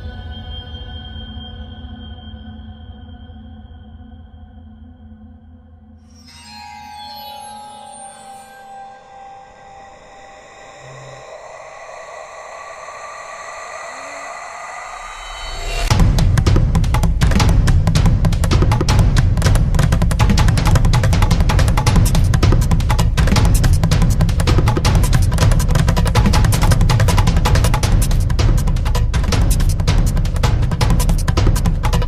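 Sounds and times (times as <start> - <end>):
action music: 15.9 - 32.0.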